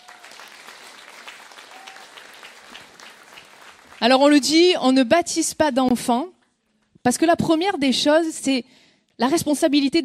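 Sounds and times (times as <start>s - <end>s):
applause: 0.0s - 4.8s
speech: 4.0s - 6.4s, 7.0s - 10.0s.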